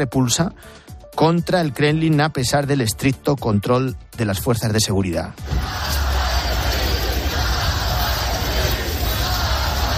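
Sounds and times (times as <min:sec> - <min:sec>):
speech: 0:00.0 - 0:06.0
large crowd chanting opposition leader's name and shouting: 0:05.4 - 0:09.9.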